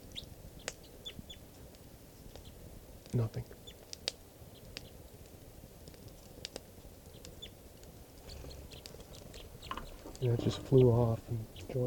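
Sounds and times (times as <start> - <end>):
bird chittering while perched on net: 0.0 - 1.6, 3.6 - 3.9, 7.0 - 7.6, 8.2 - 11.8
low rumble: 0.0 - 11.8
speech: 3.1 - 3.6, 10.2 - 11.8.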